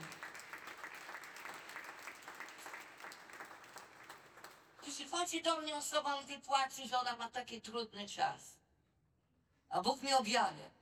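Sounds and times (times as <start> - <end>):
audience applauding: 0.0 - 4.9
speech: 5.1 - 8.6, 9.7 - 10.7.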